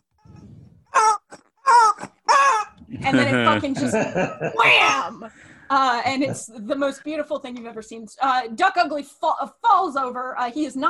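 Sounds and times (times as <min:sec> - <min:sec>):
rubber chicken squeaking: 0:00.2 - 0:02.8
laughter: 0:02.8 - 0:05.3
speech: 0:03.1 - 0:10.8.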